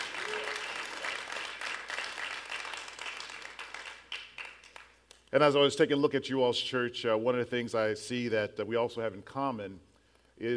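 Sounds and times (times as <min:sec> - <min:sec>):
round of applause: 0:00.0 - 0:05.2
speech: 0:05.3 - 0:10.5.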